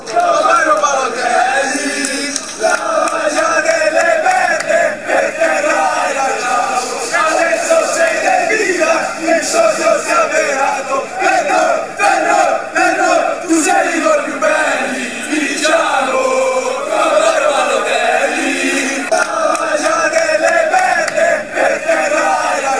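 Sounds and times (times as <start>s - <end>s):
fans chanting: 0.0s - 22.7s.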